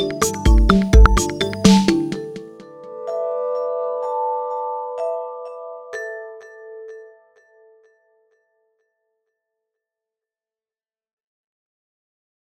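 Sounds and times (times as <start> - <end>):
vibraphone: 0.0 - 7.6.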